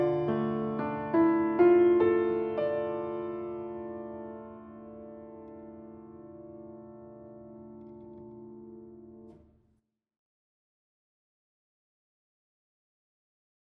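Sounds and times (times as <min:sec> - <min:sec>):
instrumental music: 0:00.0 - 0:09.6.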